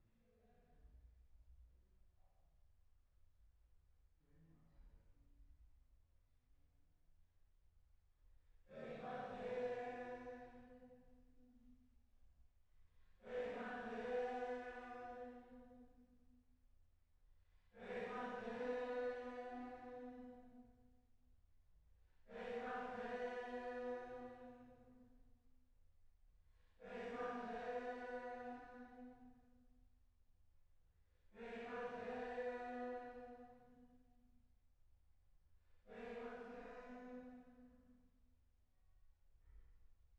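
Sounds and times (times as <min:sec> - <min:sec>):
choir singing: 0:08.7 - 0:10.9, 0:13.2 - 0:15.6, 0:17.8 - 0:20.4, 0:22.3 - 0:24.8, 0:26.8 - 0:29.1, 0:31.4 - 0:33.7, 0:35.9 - 0:37.5.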